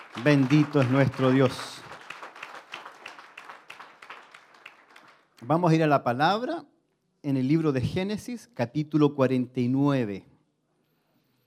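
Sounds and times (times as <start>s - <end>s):
audience applause: 0.0s - 5.4s
speech: 0.2s - 1.8s, 5.5s - 10.3s.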